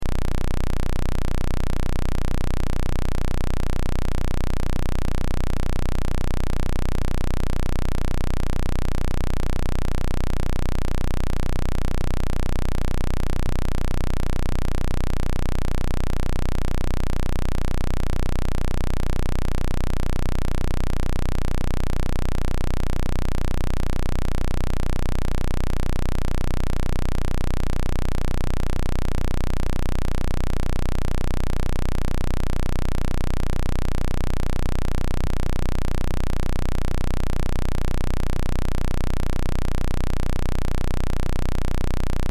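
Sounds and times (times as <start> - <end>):
square wave test tone: 0.0 - 42.3.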